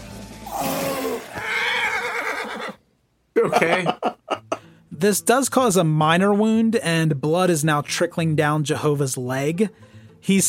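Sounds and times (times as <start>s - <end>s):
horse whinnying in pain: 0.5s - 2.8s
speech: 3.4s - 4.1s, 5.0s - 10.4s
laughter: 3.4s - 4.6s.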